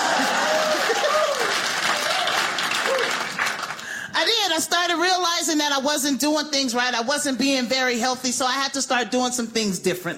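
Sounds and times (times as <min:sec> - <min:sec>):
rising shout: 0:00.0 - 0:03.2
scattered voices and whoops: 0:00.0 - 0:03.3
crowd clapping: 0:00.0 - 0:04.1
speech: 0:04.6 - 0:10.1.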